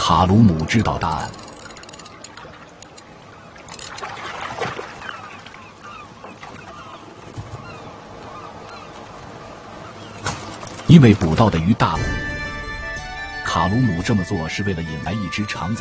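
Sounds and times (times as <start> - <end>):
water: 0.0 - 12.0
fishing boat rumble: 0.0 - 15.7
speech: 0.1 - 1.4, 10.9 - 12.3, 13.6 - 15.7
seagulls squawking around a fishing boat: 2.4 - 10.6.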